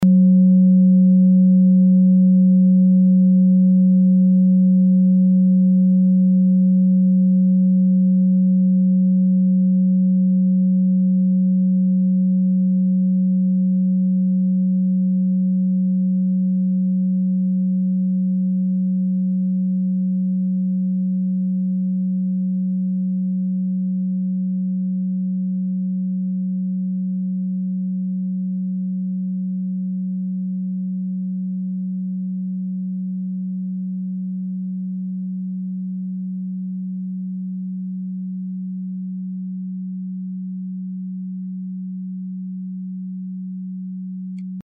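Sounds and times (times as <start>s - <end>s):
singing bowl from Ladakh: 0.0s - 44.6s.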